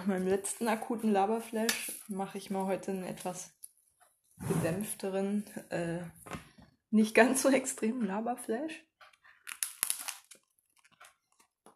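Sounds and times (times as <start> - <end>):
speech: 0.0 - 3.6, 4.4 - 8.9
chewing crunchy bread: 9.1 - 11.7.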